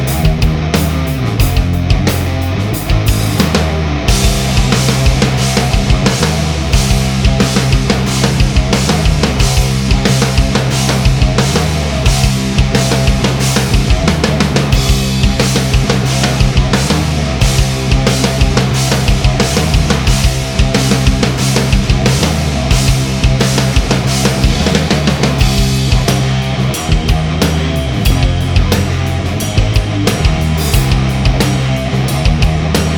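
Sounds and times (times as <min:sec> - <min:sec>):
heavy rock music: 0:00.0 - 0:32.9.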